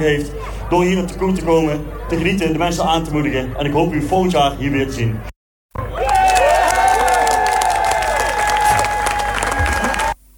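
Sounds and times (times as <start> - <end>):
speech: 0.0 - 5.3
crowd applauding at outdoor event: 5.8 - 10.2.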